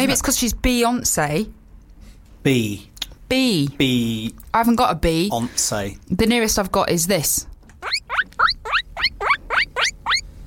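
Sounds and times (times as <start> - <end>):
speech: 0.0 - 1.6, 2.4 - 7.5
guinea pig squeaking: 7.8 - 10.3.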